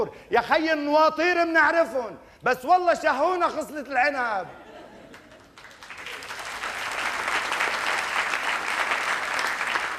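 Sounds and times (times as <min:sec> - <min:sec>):
speech: 0:00.0 - 0:04.6
crowd applauding: 0:05.1 - 0:09.9.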